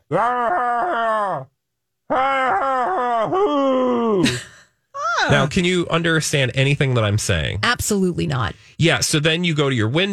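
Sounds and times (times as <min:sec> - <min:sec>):
person imitating a man screaming unintelligibly: 0:00.0 - 0:04.4
speech: 0:00.1 - 0:02.4, 0:05.3 - 0:10.1.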